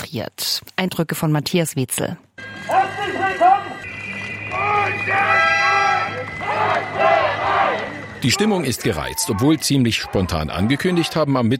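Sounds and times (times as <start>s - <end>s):
speech: 0.1s - 2.3s, 4.6s - 5.6s, 6.2s - 11.5s
shrill whistle: 2.4s - 8.2s
protesters shouting and chanting: 2.4s - 11.4s.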